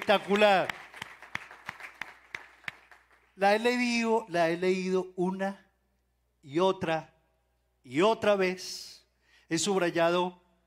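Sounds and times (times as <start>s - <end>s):
audience clapping in a steady even rhythm: 0.0s - 3.8s
speech: 0.1s - 0.8s, 3.4s - 5.6s, 6.4s - 7.1s, 7.8s - 10.4s.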